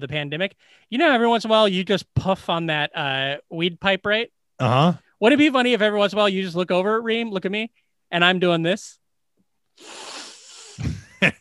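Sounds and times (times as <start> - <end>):
speech: 0.0 - 9.0, 9.8 - 10.1
sniffing a marker pen: 9.8 - 11.0.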